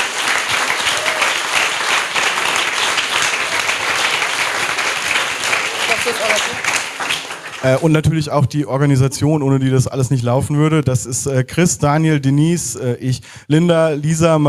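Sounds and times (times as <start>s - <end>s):
audience applause: 0.0s - 8.1s
speech: 6.1s - 6.8s, 7.6s - 14.4s.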